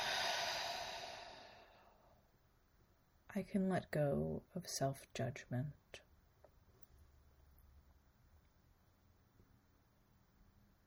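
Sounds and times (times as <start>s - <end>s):
long exhale during a guided meditation: 0.0s - 2.0s
speech: 3.3s - 6.0s.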